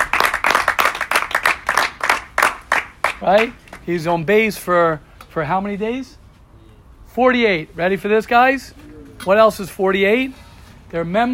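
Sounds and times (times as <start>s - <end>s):
round of applause from a group: 0.0s - 3.9s
speech: 3.2s - 6.2s, 7.2s - 11.3s.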